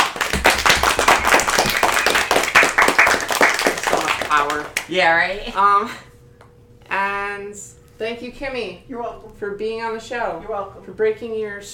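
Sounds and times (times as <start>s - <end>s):
several hands clapping: 0.0s - 5.0s
speech: 4.4s - 6.1s, 6.9s - 11.7s.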